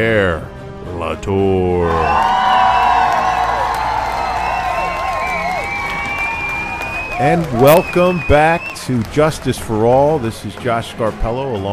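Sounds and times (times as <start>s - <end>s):
speech: 0.0s - 2.4s, 7.2s - 11.7s
audience cheering and applauding for the show's hosts: 1.8s - 10.7s.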